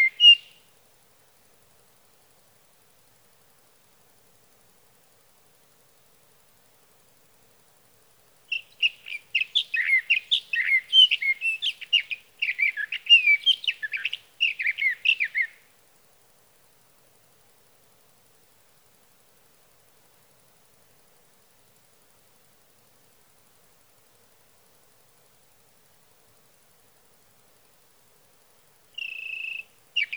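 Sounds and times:
sage thrasher: 0.0 - 0.6, 8.5 - 15.6, 29.0 - 30.1.

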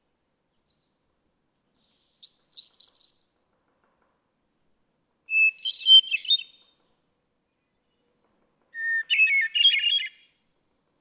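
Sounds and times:
hermit thrush singing: 1.8 - 3.2, 5.3 - 6.6, 8.8 - 10.3.

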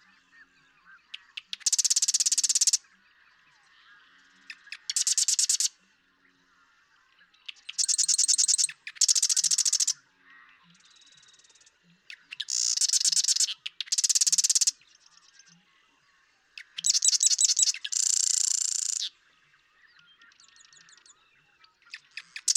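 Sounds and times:
Marsh Wren song of buzzy rattling trills: 1.2 - 2.8, 4.5 - 5.7, 7.5 - 10.0, 10.9 - 14.9, 16.6 - 19.1, 21.9 - 22.5.

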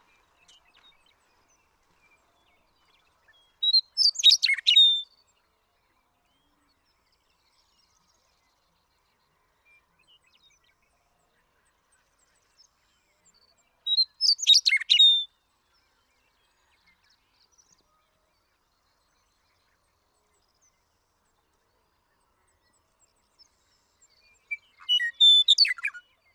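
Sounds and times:
Western meadowlark singing: 3.4 - 5.1, 13.9 - 15.3, 24.0 - 26.3.

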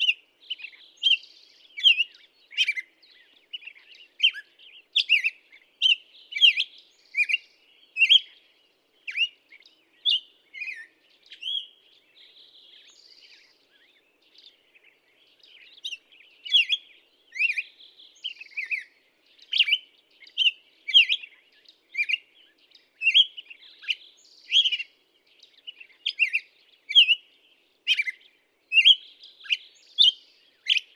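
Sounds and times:
Black-headed Grosbeak: 0.0 - 30.9.

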